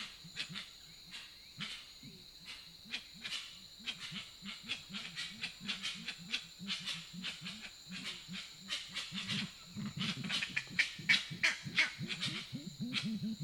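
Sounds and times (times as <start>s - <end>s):
high-pitched background hiss: 0.0s - 13.4s
grey-winged trumpeter hooting: 9.3s - 13.4s.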